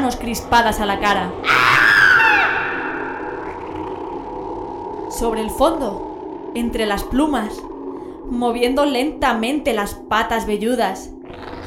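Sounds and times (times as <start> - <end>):
speech: 0.1 - 1.9, 5.2 - 7.7, 8.3 - 11.6
woman screaming in horror: 1.4 - 3.4.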